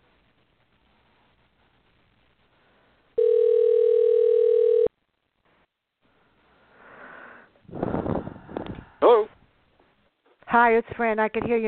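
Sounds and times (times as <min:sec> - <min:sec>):
telephone dial tone: 0:03.2 - 0:04.9
speech: 0:10.6 - 0:11.6.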